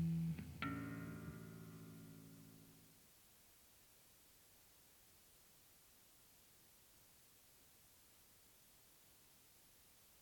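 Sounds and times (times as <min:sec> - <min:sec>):
effects pedal test: 0:00.0 - 0:02.6.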